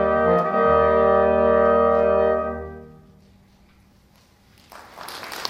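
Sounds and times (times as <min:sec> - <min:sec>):
five-part wind music: 0:00.0 - 0:04.0.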